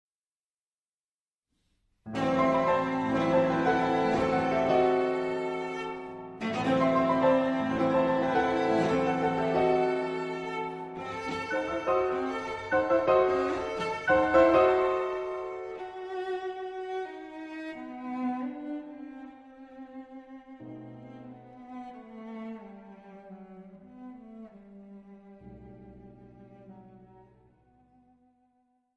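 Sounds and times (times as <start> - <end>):
piano trio in E minor lento maestoso: 2.1 - 16.4.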